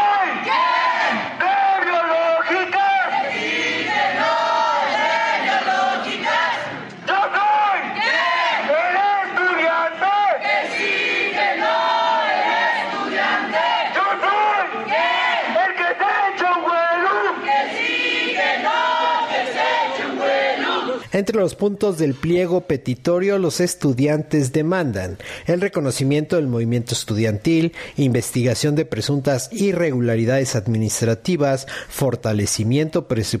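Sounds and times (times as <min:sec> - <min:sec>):
student protest crowd chanting: 0:00.0 - 0:21.0
speech: 0:21.2 - 0:33.3.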